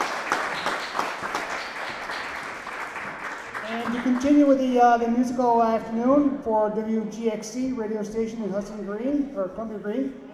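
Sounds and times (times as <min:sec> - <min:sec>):
crowd applause: 0:00.0 - 0:05.2
speech: 0:03.9 - 0:10.2.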